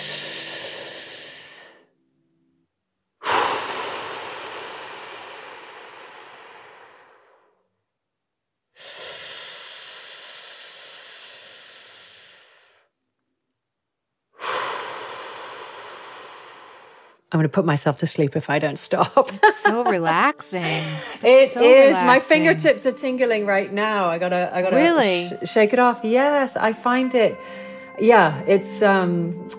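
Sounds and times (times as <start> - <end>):
long slow deep breathing through the airway: 0.0 - 2.0, 3.2 - 7.7, 8.8 - 13.0, 14.4 - 17.3, 27.4 - 28.0
speech: 17.3 - 29.5
laughter: 19.0 - 22.7.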